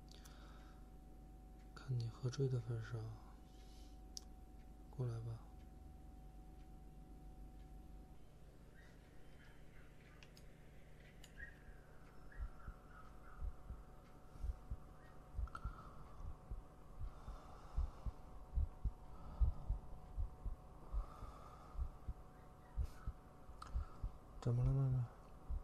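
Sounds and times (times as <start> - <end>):
speech: 1.8 - 3.3, 5.0 - 5.5
fast heartbeat: 12.3 - 23.2, 23.8 - 24.2, 25.4 - 25.6.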